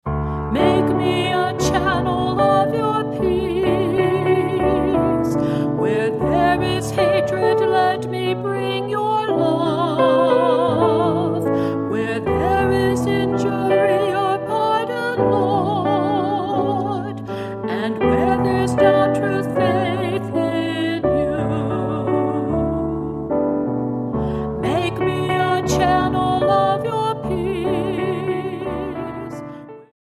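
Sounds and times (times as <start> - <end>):
church music for the preparation of the altar and gifts: 0.5 - 29.6.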